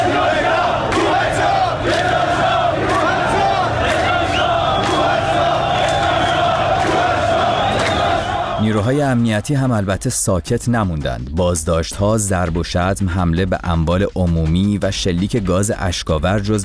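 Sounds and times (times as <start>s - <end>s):
protest crowd chanting a slogan: 0.0s - 8.8s
speech: 8.8s - 16.6s.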